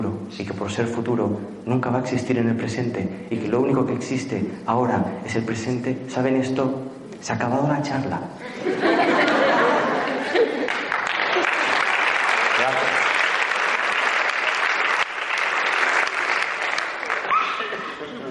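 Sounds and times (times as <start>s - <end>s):
speech: 0.3s - 8.8s
laughter: 8.4s - 12.0s, 17.4s - 18.3s
audience applause: 9.8s - 18.0s.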